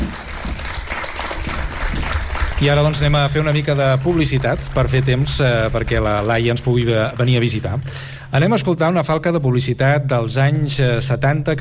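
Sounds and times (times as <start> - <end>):
audience applause: 0.0 - 7.9
speech: 2.6 - 11.6.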